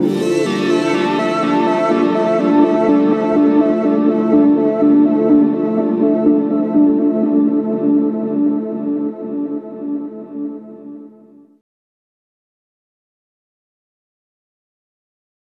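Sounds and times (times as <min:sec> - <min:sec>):
NRG synth pad: 0:00.0 - 0:11.4.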